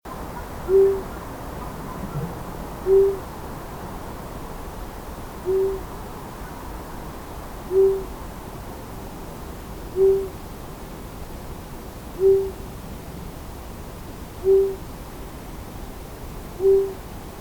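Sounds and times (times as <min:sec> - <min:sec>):
long-eared owl: 0:00.4 - 0:02.3, 0:02.9 - 0:03.2, 0:05.5 - 0:05.9, 0:07.7 - 0:08.1, 0:10.0 - 0:10.4, 0:12.2 - 0:12.6, 0:14.4 - 0:14.8, 0:16.6 - 0:17.0.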